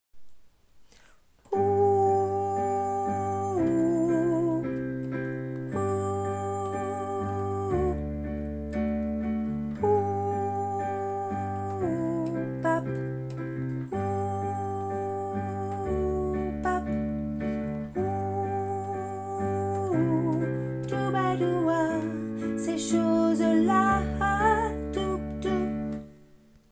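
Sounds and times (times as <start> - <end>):
soprano singing: 1.5 - 26.4.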